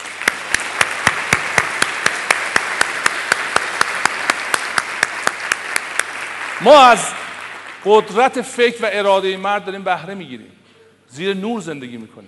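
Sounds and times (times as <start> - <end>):
general applause: 0.0 - 8.4
audience clapping in rhythm at a motivational talk: 0.0 - 9.1
speech: 6.6 - 7.2, 7.8 - 12.2.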